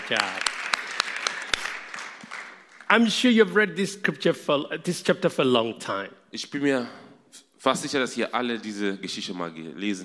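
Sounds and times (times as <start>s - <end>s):
room full of people applauding: 0.0s - 3.3s
speech: 0.1s - 0.5s, 2.9s - 10.0s.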